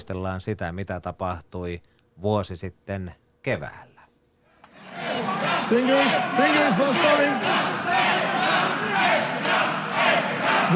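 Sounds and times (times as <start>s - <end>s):
speech: 0.0s - 3.9s, 5.7s - 9.2s
home crowd shouting and cheering in stands: 4.6s - 10.7s.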